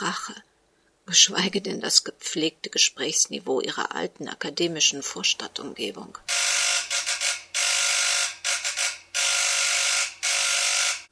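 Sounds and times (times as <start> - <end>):
speech: 1.1 - 6.3
telephone ringing: 6.3 - 11.0.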